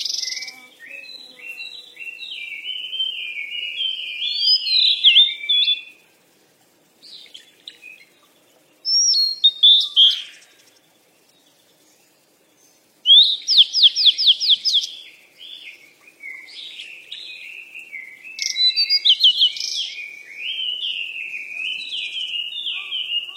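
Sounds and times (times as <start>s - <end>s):
birds chirping and twittering: 0.0s - 23.3s.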